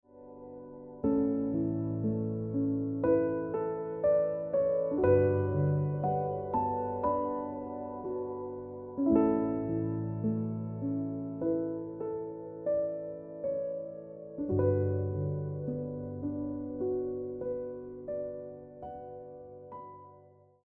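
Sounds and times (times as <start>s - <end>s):
piano music: 0.0s - 20.6s.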